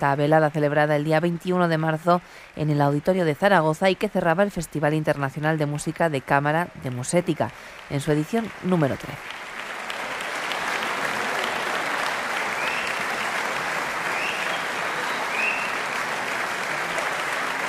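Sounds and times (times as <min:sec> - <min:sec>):
speech: 0:00.0 - 0:09.4
concert audience applause: 0:04.8 - 0:17.6.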